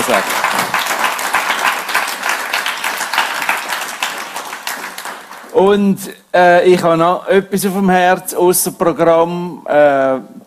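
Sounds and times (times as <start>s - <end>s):
audience applause: 0.0s - 5.6s
speech: 5.6s - 10.4s.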